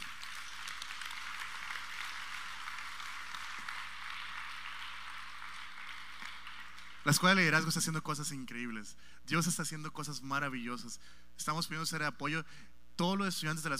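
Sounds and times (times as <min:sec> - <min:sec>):
audience applause: 0:00.0 - 0:07.0
speech: 0:07.0 - 0:13.7.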